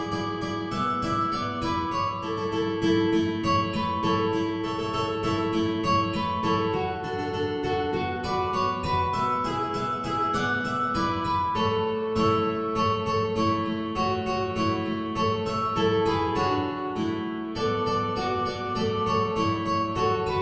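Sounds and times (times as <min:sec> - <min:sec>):
ukulele playing a Christmas tune in D6: 0:00.0 - 0:20.3.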